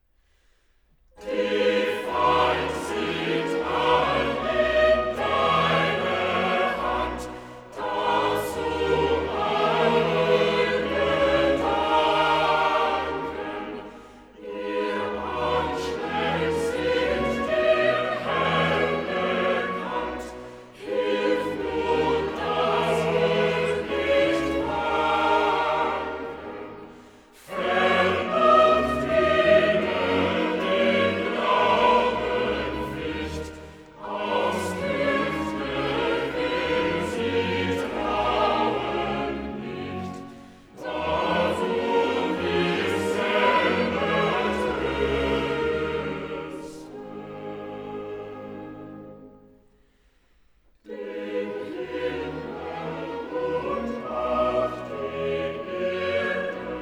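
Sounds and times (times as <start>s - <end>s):
choir singing cantatas: 1.2s - 49.7s, 50.8s - 56.8s.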